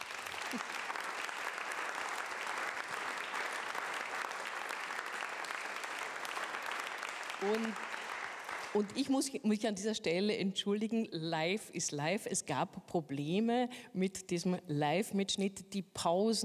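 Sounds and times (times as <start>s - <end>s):
audience applause: 0.0s - 9.0s
speech: 0.5s - 0.7s, 7.4s - 7.9s, 8.7s - 16.4s.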